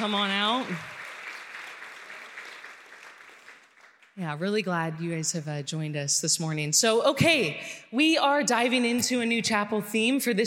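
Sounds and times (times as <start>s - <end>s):
speech: 0.0s - 1.0s, 4.2s - 10.4s
audience applause welcoming football recruits at a chapel gathering: 0.0s - 4.2s.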